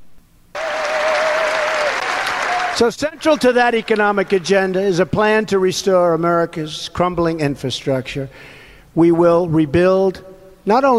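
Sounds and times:
Republican crowd applauding a political speech: 0.6s - 5.0s
speech: 2.8s - 10.9s.

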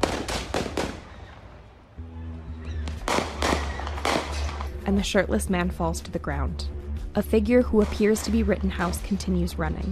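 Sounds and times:
gunshots in the parking lot of an auto service shop: 0.0s - 1.4s, 2.8s - 4.7s
speech: 4.9s - 9.8s.

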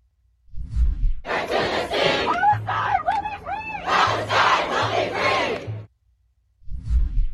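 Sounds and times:
low rhythmic pulses: 1.3s - 5.9s
protest crowd chanting slogans: 1.3s - 5.9s.

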